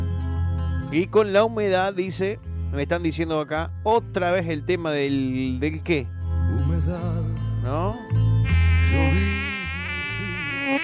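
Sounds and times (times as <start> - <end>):
speech: 0.9 - 8.2
mosquito buzzing close to the ear: 8.4 - 10.8.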